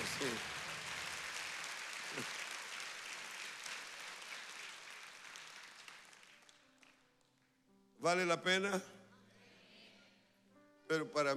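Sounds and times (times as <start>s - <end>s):
audience applause: 0.0s - 6.9s
speech: 8.0s - 9.0s, 10.9s - 11.3s.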